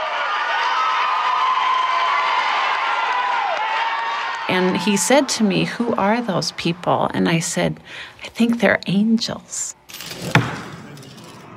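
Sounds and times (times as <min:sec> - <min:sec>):
crowd clapping and cheering: 0:00.0 - 0:06.9
speech: 0:04.5 - 0:10.5.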